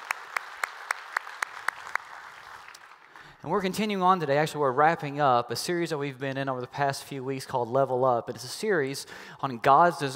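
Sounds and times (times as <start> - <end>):
congregation applauding: 0.0 - 3.4
speech: 3.4 - 10.1.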